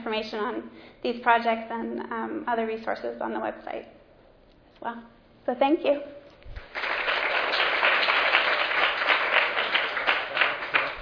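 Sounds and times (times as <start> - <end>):
speech: 0.0 - 4.0, 4.8 - 6.2
audience applause for panelists: 6.6 - 11.0.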